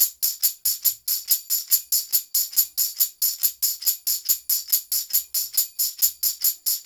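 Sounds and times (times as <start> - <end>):
tambourine: 0.0 - 6.8.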